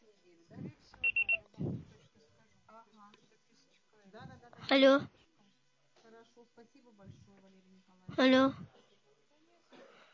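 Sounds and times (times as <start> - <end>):
faint voice: 0.0 - 10.1
voicemail system beeps: 1.0 - 1.4
speech: 4.7 - 5.2, 6.6 - 8.7.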